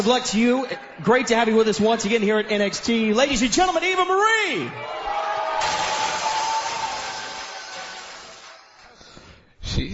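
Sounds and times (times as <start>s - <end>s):
speech: 0.0s - 5.0s, 9.8s - 9.9s
crowd roaring at wrestler entrance: 4.8s - 8.9s.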